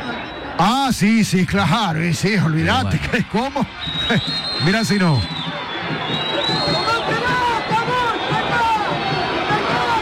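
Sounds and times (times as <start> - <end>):
speech: 0.6 - 6.9
angry stadium crowd shouting: 2.3 - 10.0.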